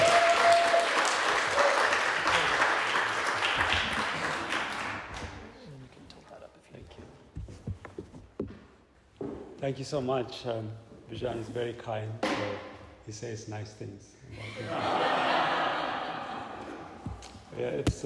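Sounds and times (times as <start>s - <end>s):
audience applause welcoming a pastor at a church event: 0.0s - 5.6s
speech: 9.7s - 15.1s, 17.6s - 18.0s
laughter: 14.3s - 17.0s.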